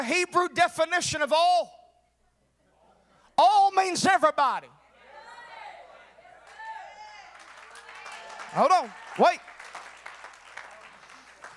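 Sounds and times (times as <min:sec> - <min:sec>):
speech: 0:00.0 - 0:01.8, 0:03.4 - 0:04.8, 0:08.5 - 0:09.5
audience clapping hands: 0:06.4 - 0:11.5.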